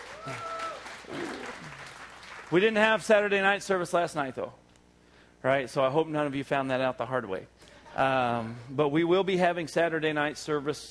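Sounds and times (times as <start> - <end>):
audience applause: 0.0 - 2.8
speech: 0.2 - 0.5, 2.5 - 4.6, 5.4 - 10.8.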